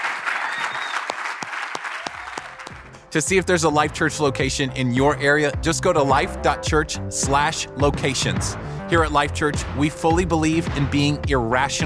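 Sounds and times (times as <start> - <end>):
audience cheering: 0.0 - 2.9
speech: 3.1 - 11.8.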